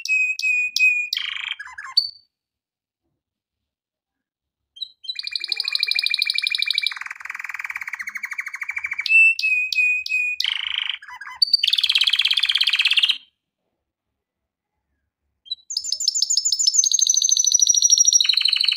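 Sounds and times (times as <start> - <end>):
canary song of trills and whistled notes: 0.0 - 2.3, 4.8 - 13.3, 15.4 - 18.7.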